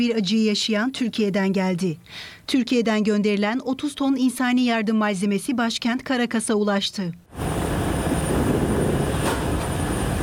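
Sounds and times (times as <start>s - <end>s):
speech: 0.0s - 7.4s
military cargo planes landing at an airport: 7.3s - 10.2s.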